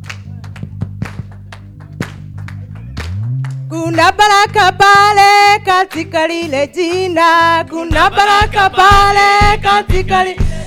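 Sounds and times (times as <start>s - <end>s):
audience clapping hands: 0.0s - 5.2s, 5.8s - 9.2s
speech: 3.7s - 10.4s.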